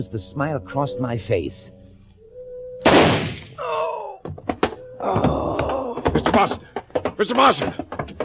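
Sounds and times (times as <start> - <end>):
speech: 0.0 - 1.8, 5.0 - 5.5, 6.4 - 7.9
heavy shotgun blast in an audio drama: 2.8 - 3.6
sharp knocks: 4.2 - 8.2.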